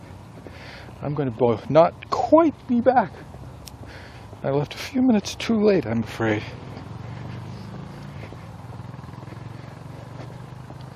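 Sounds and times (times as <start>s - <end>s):
speech: 1.0s - 3.3s, 4.4s - 6.6s
motorcycle engine rumbling past: 2.2s - 10.9s.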